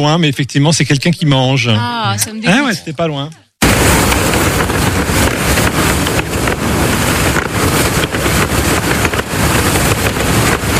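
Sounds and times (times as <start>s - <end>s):
speech: 0.0s - 4.1s
wind flapping in boat sails: 3.6s - 10.7s.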